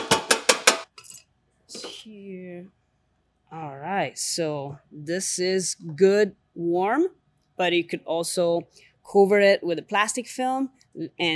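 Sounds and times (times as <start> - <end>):
utensil knocking against a metal pan: 0.0 - 0.9
speech: 2.1 - 2.8, 3.5 - 11.3.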